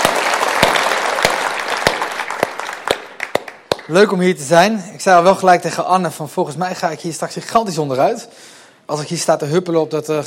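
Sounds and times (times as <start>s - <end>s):
audience applauding: 0.0s - 4.1s
speech: 3.9s - 10.2s.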